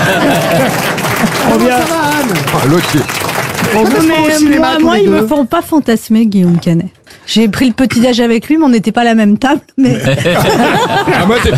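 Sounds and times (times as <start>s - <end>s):
laughter: 0.0s - 5.3s, 9.8s - 11.5s
audience applause: 0.0s - 5.4s
speech: 2.7s - 11.5s.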